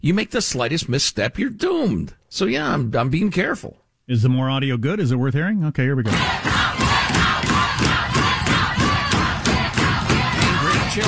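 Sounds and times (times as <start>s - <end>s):
speech: 0.0s - 6.5s
crowd of protesters shouting and chanting: 6.1s - 11.0s.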